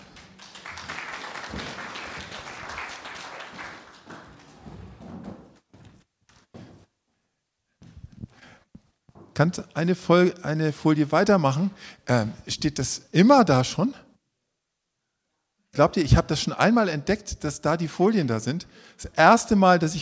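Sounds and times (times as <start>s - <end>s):
audience applause: 0.0s - 5.0s
speech: 9.4s - 14.0s, 15.8s - 20.0s.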